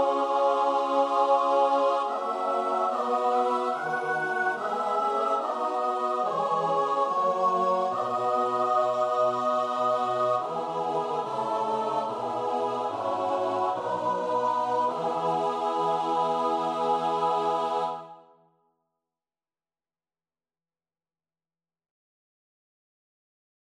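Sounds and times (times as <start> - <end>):
choir singing: 0.0 - 18.3.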